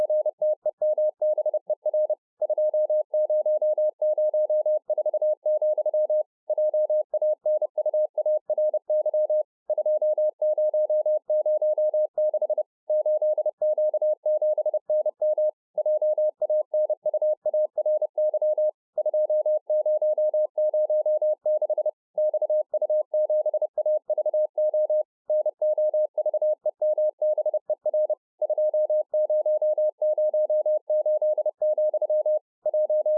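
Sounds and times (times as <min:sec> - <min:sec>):
Morse code beeps: 0:00.0 - 0:33.1.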